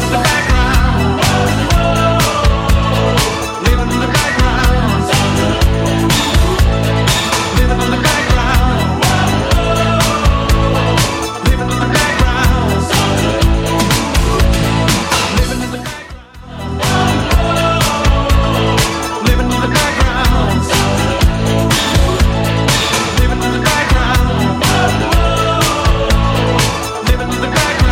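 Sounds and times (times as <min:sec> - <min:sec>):
80s style music track at 123 bpm: 0:00.0 - 0:27.8.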